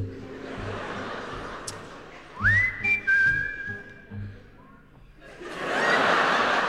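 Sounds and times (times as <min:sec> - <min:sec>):
laughter: 0:00.0 - 0:03.0, 0:05.2 - 0:06.6
broad hissy crowd noise: 0:00.0 - 0:06.6
soft low music: 0:00.0 - 0:06.6
audience in a large hall whistling along to a song: 0:02.4 - 0:04.3.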